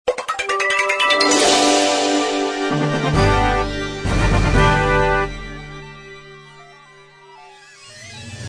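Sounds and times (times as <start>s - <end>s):
jingle: 0.5s - 7.0s.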